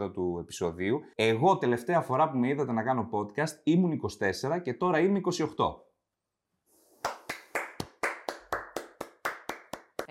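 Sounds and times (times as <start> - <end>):
speech: 0.0 - 5.9
single person clapping: 7.0 - 10.0.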